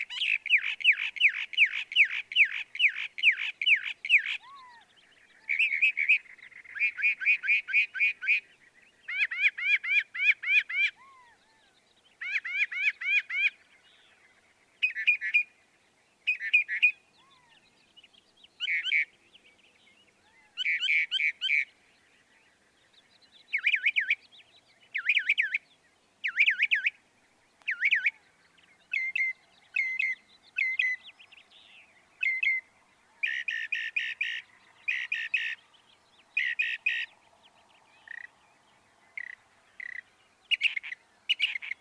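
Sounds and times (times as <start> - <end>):
northern mockingbird song: 0.0 - 41.7.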